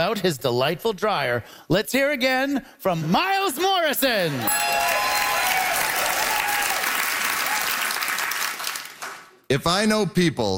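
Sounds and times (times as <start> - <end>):
speech: 0.0 - 5.1, 9.5 - 10.5
theater audience applauding: 4.1 - 9.5.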